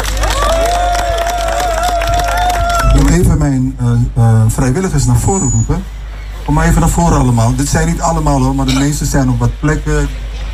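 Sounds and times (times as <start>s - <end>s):
audience applause: 0.0s - 3.2s
high cheer or whistle: 0.2s - 3.1s
speech: 3.2s - 10.5s.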